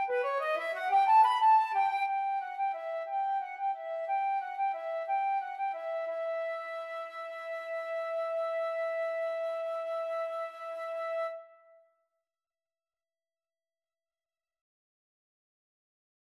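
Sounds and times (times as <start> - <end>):
violin: 0.0 - 11.4
flute: 0.0 - 11.9.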